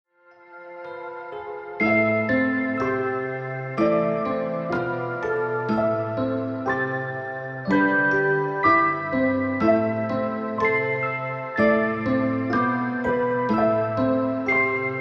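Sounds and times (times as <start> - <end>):
music track in A minor: 0.2 - 14.9.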